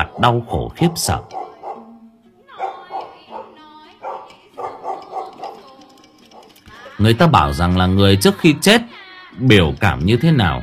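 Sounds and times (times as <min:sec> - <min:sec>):
speech: 0:00.0 - 0:01.4, 0:07.0 - 0:10.6
dog barking: 0:00.0 - 0:02.0, 0:02.6 - 0:07.0
dog whining: 0:01.3 - 0:07.0.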